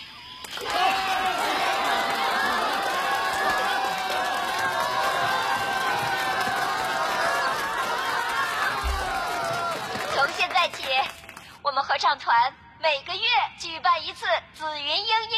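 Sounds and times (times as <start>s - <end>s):
audience applause and cheering: 0.4s - 11.5s
speech: 12.1s - 15.3s.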